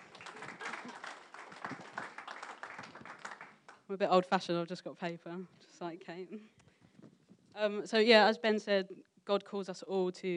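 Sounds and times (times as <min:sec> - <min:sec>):
church audience applause: 0:00.0 - 0:03.7
speech: 0:03.9 - 0:06.6, 0:07.6 - 0:10.3.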